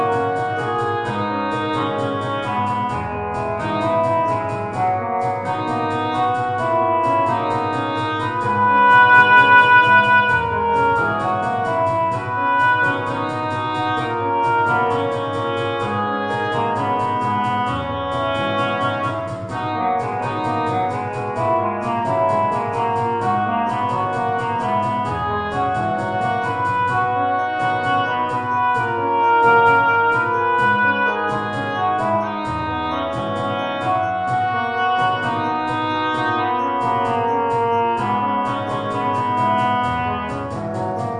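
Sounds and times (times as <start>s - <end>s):
MIDI hand drum: 0.0s - 41.1s
MIDI piano: 0.0s - 41.1s.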